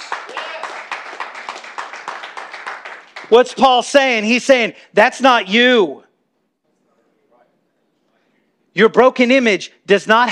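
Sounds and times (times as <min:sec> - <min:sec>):
audience clapping: 0:00.0 - 0:03.7
speech: 0:03.3 - 0:06.0, 0:08.8 - 0:10.3.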